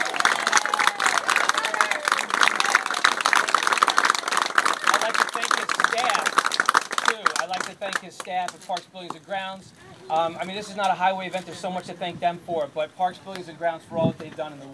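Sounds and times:
audience applause: 0.0 - 8.7
speech: 8.0 - 14.7.

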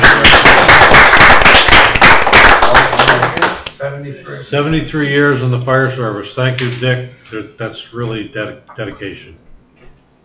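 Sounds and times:
crowd applause for a lifetime firefighter: 0.0 - 3.7
speech: 4.2 - 9.4.

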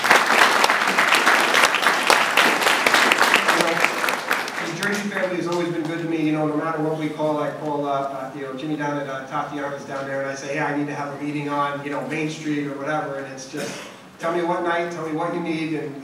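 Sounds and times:
audience applause welcoming a panel guest: 0.0 - 6.0
speech: 6.7 - 16.0.

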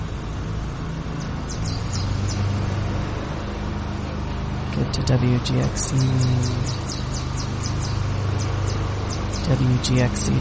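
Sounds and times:
lawn mower engine drone: 0.0 - 10.3
short high bird chirps: 1.2 - 2.6, 5.6 - 10.3
speech: 4.8 - 7.0, 9.5 - 10.3.

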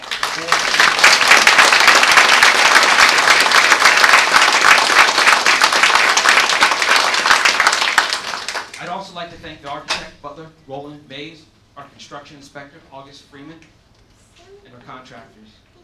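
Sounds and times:
audience applause: 0.0 - 8.8
speech: 9.5 - 13.8, 14.4 - 15.7.

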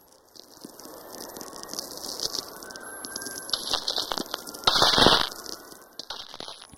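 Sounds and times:
auroral crackling with pops and snaps: 0.0 - 6.7.

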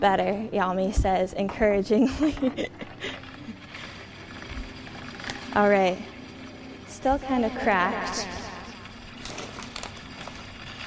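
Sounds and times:
speech: 0.0 - 3.2, 5.6 - 6.1, 7.0 - 8.4
hand-cranked pasta maker rolling ravioli dough: 2.7 - 10.8.

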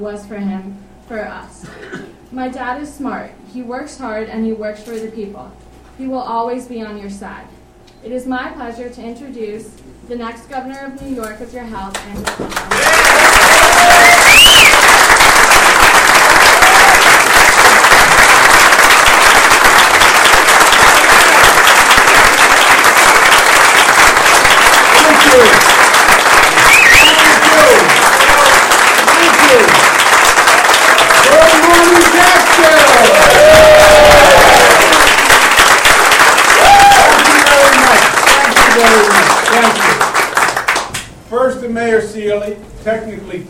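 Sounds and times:
speech: 0.0 - 14.7, 25.3 - 25.7, 31.8 - 34.1, 41.6 - 43.4
large crowd applause: 12.5 - 41.0
cheers and whoops: 12.7 - 15.0, 16.3 - 17.3, 26.4 - 29.7, 30.7 - 35.3, 36.4 - 37.7.

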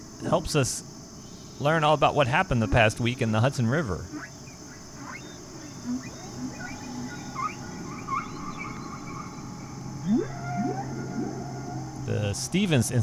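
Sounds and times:
steady low hum and hiss: 0.0 - 13.0
speech: 0.2 - 0.9, 1.6 - 4.3, 12.1 - 13.0
whale calls with tonal moans and swooping whistles: 4.1 - 13.0.

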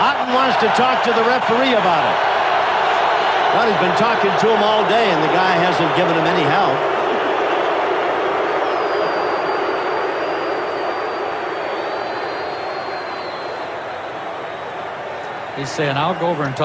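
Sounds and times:
football stadium crowd roaring: 0.0 - 16.6
speech: 0.5 - 2.4, 3.5 - 7.0, 15.6 - 16.6.

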